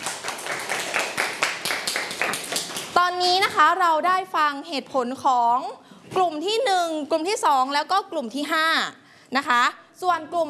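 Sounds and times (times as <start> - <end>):
classroom clapping for presenters: 0.0 - 3.0
speech: 3.0 - 10.4.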